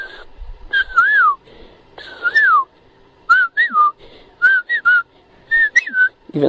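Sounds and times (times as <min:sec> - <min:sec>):
person whistling an imitation of cuckoo song: 0:00.7 - 0:01.4, 0:02.0 - 0:02.7, 0:03.3 - 0:06.2.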